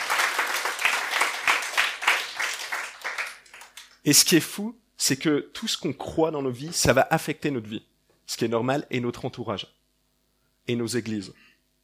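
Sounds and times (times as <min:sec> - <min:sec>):
audience applause: 0:00.0 - 0:04.0
speech: 0:04.0 - 0:09.8, 0:10.7 - 0:11.5.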